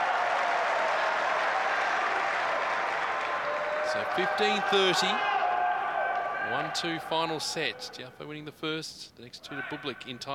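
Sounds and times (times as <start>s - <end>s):
crowd applause and cheering: 0.0s - 7.4s
speech: 3.9s - 5.3s, 6.5s - 10.3s.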